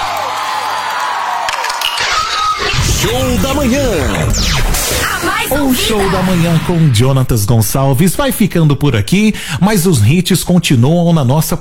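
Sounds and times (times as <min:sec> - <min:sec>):
studio audience cheering and applauding a guest on a morning music show: 0:00.0 - 0:03.3
speech: 0:03.0 - 0:11.5.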